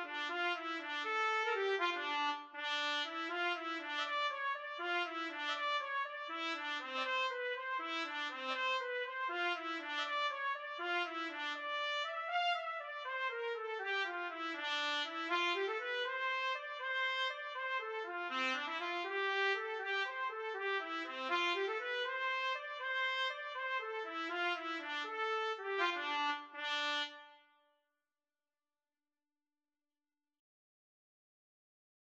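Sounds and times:
trumpet duet: 0:00.0 - 0:27.5.

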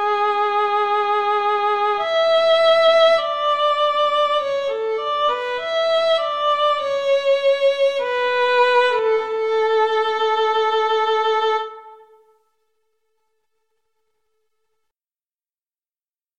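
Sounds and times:
violin and cello duet: 0:00.0 - 0:12.2.

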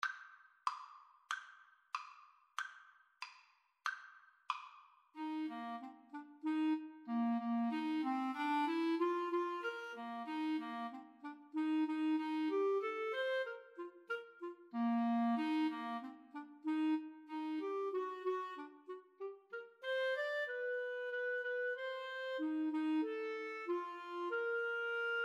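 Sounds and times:
clarinet duet: 0:05.2 - 0:25.2.

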